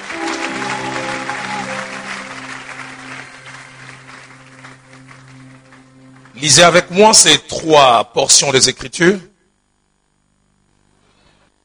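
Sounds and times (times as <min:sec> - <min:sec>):
church congregation clapping during worship: 0:00.0 - 0:07.4
sustained keyboard chords: 0:00.0 - 0:07.7
speech: 0:06.4 - 0:09.3.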